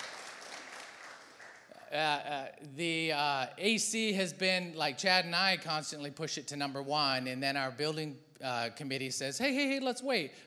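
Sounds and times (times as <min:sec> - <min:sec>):
audience clapping: 0:00.0 - 0:01.8
speech: 0:01.9 - 0:10.4.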